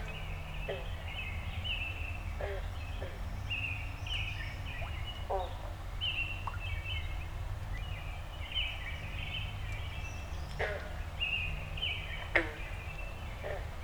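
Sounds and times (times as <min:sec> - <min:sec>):
birds chirping at dawn in a backyard: 0:00.0 - 0:13.8.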